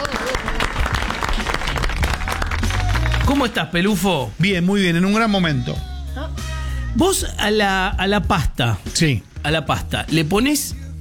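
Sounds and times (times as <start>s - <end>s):
crowd applauding: 0.0s - 3.7s
speech: 3.3s - 10.8s.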